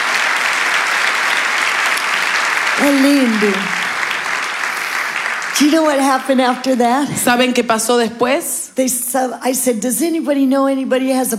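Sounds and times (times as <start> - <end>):
applause from a gathering at a bilingual religious talk: 0.0 - 7.8
speech: 2.8 - 3.8, 5.6 - 11.3.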